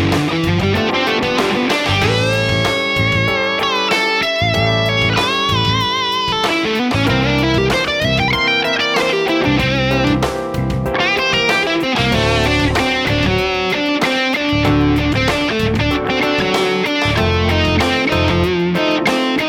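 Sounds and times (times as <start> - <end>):
creative rock music: 0.0 - 19.4.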